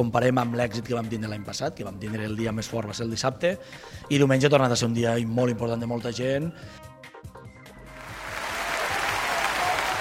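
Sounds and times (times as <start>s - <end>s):
speech: 0.0s - 6.9s
applause: 8.0s - 9.9s.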